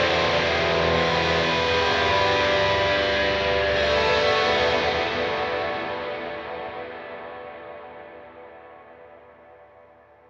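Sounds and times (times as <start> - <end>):
high gain distortion: 0.0 - 6.8.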